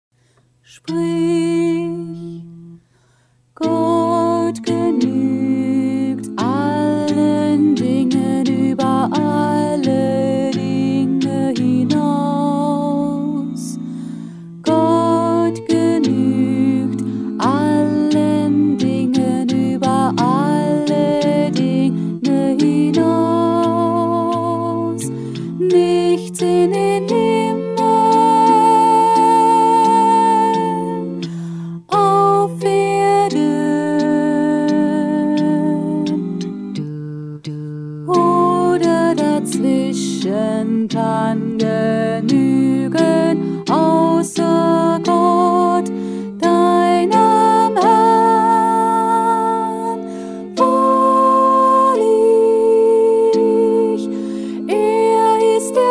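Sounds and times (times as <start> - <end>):
choral music: 0.8 - 55.9
alto singing: 3.6 - 55.9.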